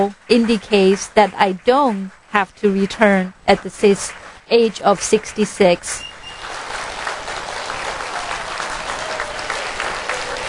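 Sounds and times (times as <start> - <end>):
speech: 0.0 - 6.1
audience applauding: 6.0 - 10.4.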